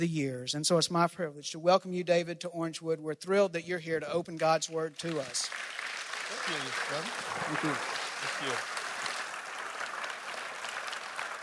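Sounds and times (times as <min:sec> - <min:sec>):
speech: 0:00.0 - 0:05.8, 0:06.4 - 0:08.8
audience applause: 0:05.0 - 0:11.4.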